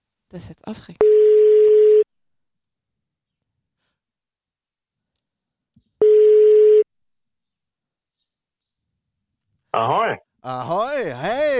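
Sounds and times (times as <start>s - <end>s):
speech: 0.3s - 1.3s
telephone ringing tone during outgoing call: 1.0s - 2.1s, 6.0s - 6.9s
laughter: 10.5s - 11.5s.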